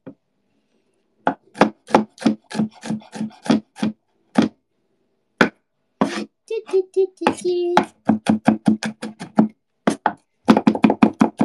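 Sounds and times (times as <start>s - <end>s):
knife mincing garlic: 1.3s - 4.5s, 7.2s - 11.4s.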